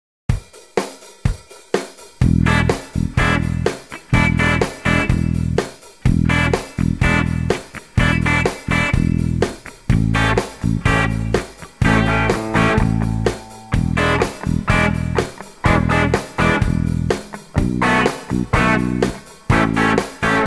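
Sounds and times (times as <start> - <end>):
rhythm guitar: 0.3 - 20.4.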